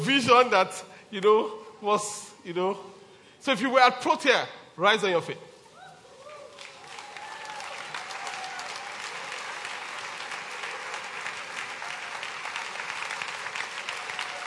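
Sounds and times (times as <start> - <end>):
speech: 0.0 - 5.5
audience applause: 6.4 - 14.4.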